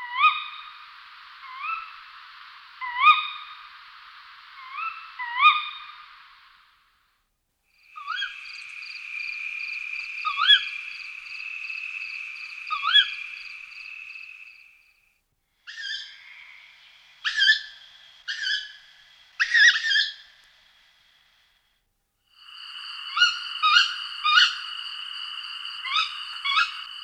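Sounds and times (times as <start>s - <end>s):
tawny owl calling: 1.4s - 2.0s, 2.8s - 3.7s, 4.6s - 6.0s, 7.8s - 14.8s, 15.7s - 20.4s, 22.4s - 27.0s.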